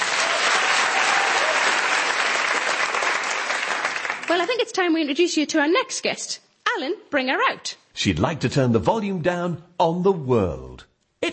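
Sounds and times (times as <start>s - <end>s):
audience applause: 0.0s - 4.4s
speech: 4.3s - 11.3s.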